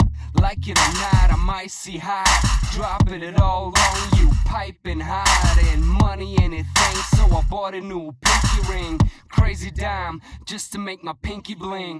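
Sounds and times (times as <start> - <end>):
music loop: 0.0 - 1.6, 2.3 - 4.6, 5.3 - 7.6, 8.3 - 9.0.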